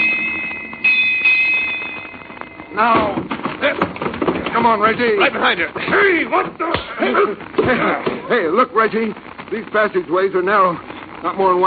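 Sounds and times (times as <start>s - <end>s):
bells striking eight: 0.0s - 3.2s
speech: 2.8s - 4.0s, 4.6s - 11.6s.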